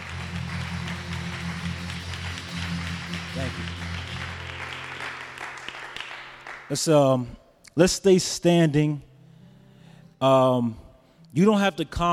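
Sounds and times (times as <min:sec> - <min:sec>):
audience hand clapping: 0:00.0 - 0:07.0
speech: 0:06.7 - 0:09.1, 0:10.2 - 0:12.1.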